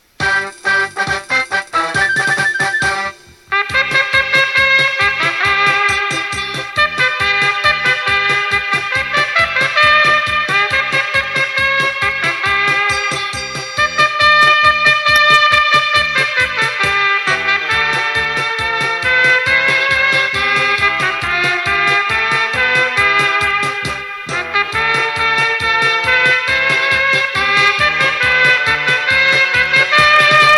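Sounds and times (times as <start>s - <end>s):
trumpet: 0.0s - 30.5s.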